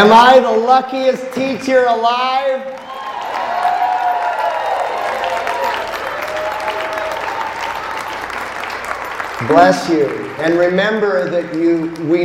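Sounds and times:
speech: 0.0 - 3.0, 9.4 - 12.2
cheers and whoops: 2.7 - 8.8
standing ovation applause from a large crowd: 2.8 - 12.2.

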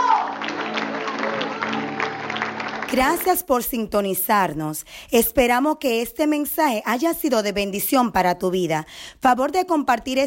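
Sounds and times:
audience applauding: 0.0 - 3.4
speech: 2.9 - 10.2.

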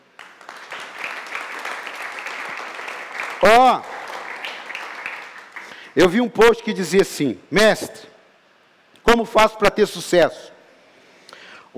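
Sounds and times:
audience applause: 0.0 - 5.9
speech: 3.4 - 3.9, 6.0 - 8.1, 9.1 - 10.5.

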